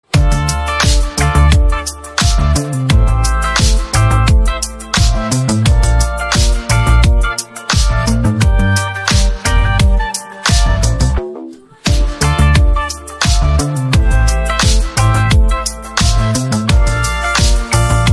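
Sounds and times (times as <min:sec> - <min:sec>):
instrumental music: 0:00.0 - 0:18.1.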